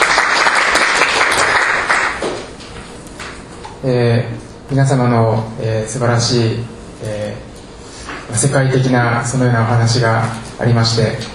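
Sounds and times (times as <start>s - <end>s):
crowd applauding: 0.0s - 2.5s
speech: 3.8s - 7.2s, 8.3s - 11.3s.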